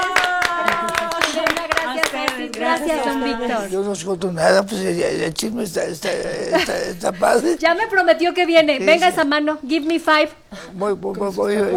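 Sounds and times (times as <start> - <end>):
audience applause: 0.0 - 3.3
laughter: 0.0 - 9.6
speech: 2.8 - 11.7.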